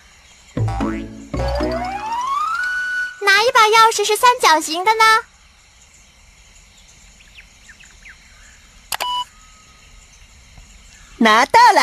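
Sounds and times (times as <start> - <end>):
springy cartoon boings of jumping boots: 0.6 - 3.2
speech: 3.7 - 5.3, 11.2 - 11.8.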